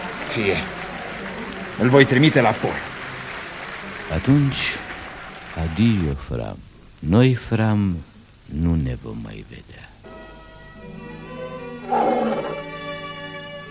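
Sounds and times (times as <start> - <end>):
speech: 0.4 - 0.8, 1.8 - 2.9, 4.1 - 4.9, 5.6 - 9.9
tiger roaring: 11.8 - 12.7.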